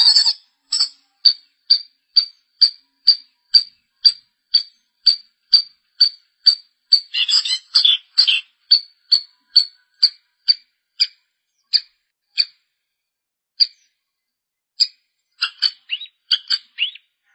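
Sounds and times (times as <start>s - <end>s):
long-tailed shrike calling: 0.0s - 10.2s, 15.4s - 17.0s.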